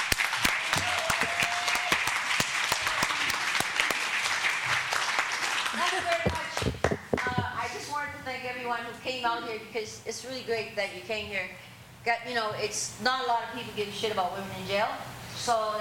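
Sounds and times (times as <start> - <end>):
audience applause welcoming a performer: 0.0 - 7.3
speech: 8.4 - 15.7.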